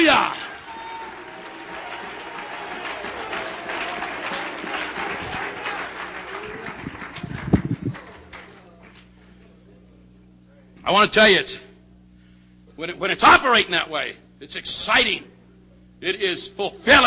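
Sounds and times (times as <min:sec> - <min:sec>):
audience clapping hands: 0:00.0 - 0:09.2
speech: 0:10.9 - 0:11.6, 0:12.8 - 0:15.3, 0:16.0 - 0:17.0.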